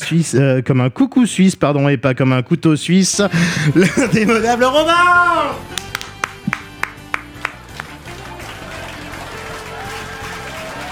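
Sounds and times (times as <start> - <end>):
speech: 0.1 - 5.8
laughter: 3.3 - 4.8
audience applause: 5.7 - 10.8.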